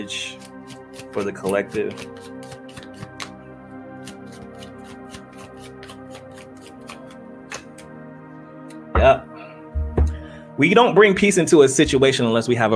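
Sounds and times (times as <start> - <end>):
speech: 0.0 - 0.4, 1.2 - 2.3, 10.6 - 12.7
oracle cards being shuffled and pulled from the deck: 0.3 - 3.4, 4.0 - 7.9.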